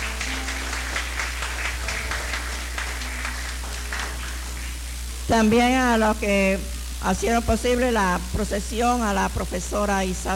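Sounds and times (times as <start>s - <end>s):
audience applause: 0.0s - 5.0s
speech: 5.3s - 10.3s.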